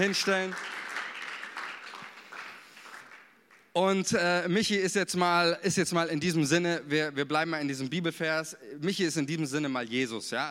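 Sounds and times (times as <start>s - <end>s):
speech: 0.0s - 0.8s, 3.8s - 10.4s
crowd applauding: 0.0s - 3.7s.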